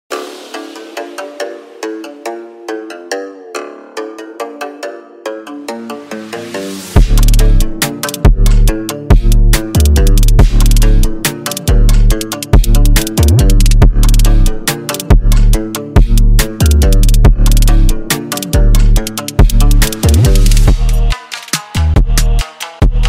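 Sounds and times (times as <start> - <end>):
trap beat: 7.0 - 23.0.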